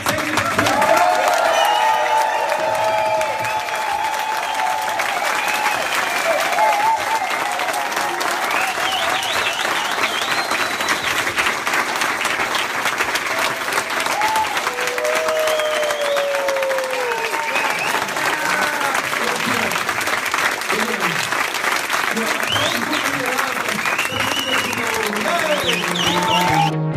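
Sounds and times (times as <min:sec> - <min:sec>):
audience applause: 0:00.0 - 0:26.8
whoops and cheers: 0:00.4 - 0:10.9, 0:13.4 - 0:19.0, 0:23.9 - 0:26.7.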